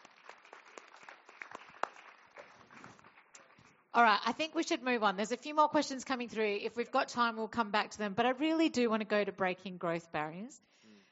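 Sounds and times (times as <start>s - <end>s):
audience clapping: 0.0s - 3.9s
speech: 4.0s - 10.8s.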